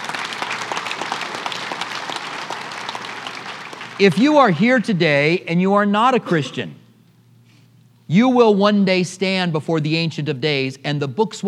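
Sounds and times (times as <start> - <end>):
audience applause: 0.0 - 4.4
speech: 4.0 - 6.8, 8.1 - 11.4.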